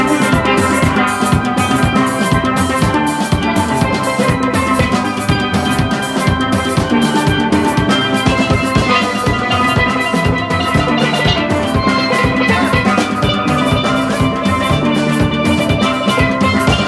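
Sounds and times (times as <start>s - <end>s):
steelband playing at a cricket ground: 0.0s - 16.8s.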